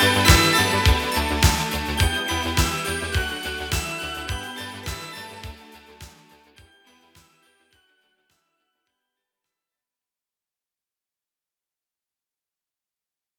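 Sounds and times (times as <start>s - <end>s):
instrumental music: 0.0s - 7.6s.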